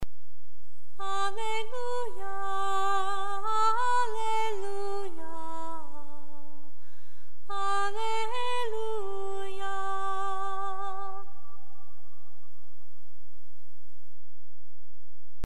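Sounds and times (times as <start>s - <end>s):
alleluia chant: 1.0s - 6.7s, 7.5s - 12.6s.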